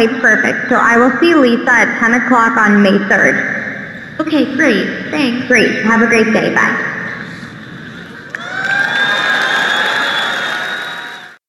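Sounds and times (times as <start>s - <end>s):
speech: 0.0s - 3.6s, 4.2s - 7.0s
large conference audience cheering and applauding: 8.3s - 11.4s.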